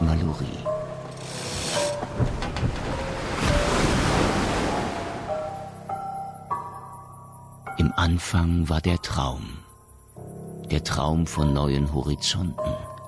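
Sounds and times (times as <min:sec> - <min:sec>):
sailing boat rigging creaking: 0:00.8 - 0:03.7
ocean waves surging beneath sailing boats on open ocean: 0:02.8 - 0:05.9
speech: 0:08.0 - 0:09.6, 0:10.7 - 0:12.9.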